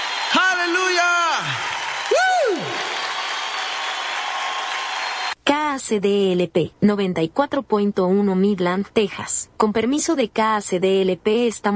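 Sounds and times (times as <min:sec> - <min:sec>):
loud applause: 0:00.0 - 0:05.4
speech: 0:05.8 - 0:11.7.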